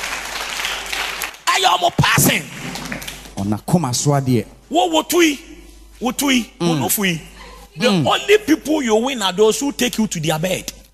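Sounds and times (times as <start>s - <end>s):
audience clapping: 0.0s - 3.5s
speech: 1.6s - 2.7s, 3.4s - 10.7s.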